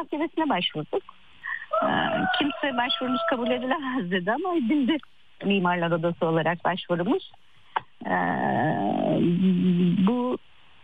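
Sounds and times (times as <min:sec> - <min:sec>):
speech: 0:00.0 - 0:01.2, 0:01.8 - 0:10.5
rooster crowing: 0:01.7 - 0:03.8.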